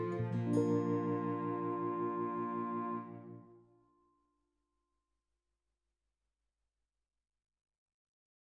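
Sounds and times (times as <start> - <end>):
clarinet: 0.0 - 3.6.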